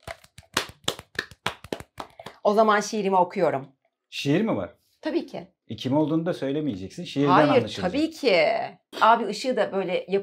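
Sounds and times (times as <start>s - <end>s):
sharp hand claps: 0.0s - 2.4s
speech: 2.4s - 10.2s.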